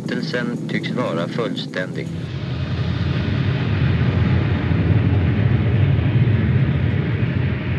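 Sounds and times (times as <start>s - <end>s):
speech: 0.2s - 2.4s
hydrogen bomb explosion illustration: 2.1s - 7.7s.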